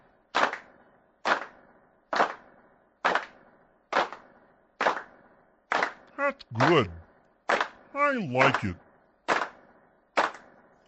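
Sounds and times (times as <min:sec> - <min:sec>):
hand claps: 0:00.4 - 0:00.7, 0:03.1 - 0:04.2, 0:04.8 - 0:05.1, 0:05.7 - 0:06.9, 0:07.5 - 0:07.8, 0:08.4 - 0:08.7, 0:09.3 - 0:09.6, 0:10.2 - 0:10.5
speech: 0:06.2 - 0:07.0, 0:08.0 - 0:08.8.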